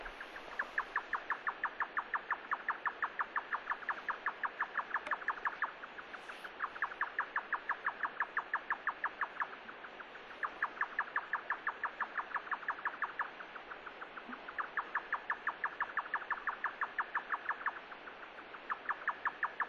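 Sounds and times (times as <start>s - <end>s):
yotaka nightjar in Nigata: 0.0s - 19.6s.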